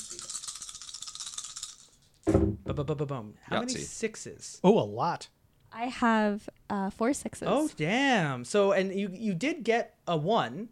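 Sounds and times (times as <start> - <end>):
dice being rolled, rattling and clattering: 0.0 - 2.1
speech: 2.7 - 10.7.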